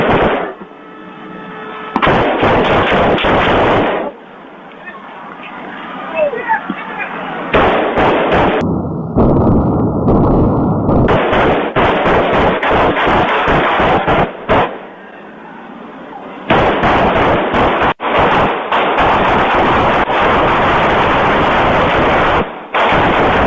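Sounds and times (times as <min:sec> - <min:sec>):
gunfire shots fired into a crowd: 0:00.0 - 0:00.6, 0:02.0 - 0:04.2, 0:07.5 - 0:14.8, 0:16.5 - 0:23.4.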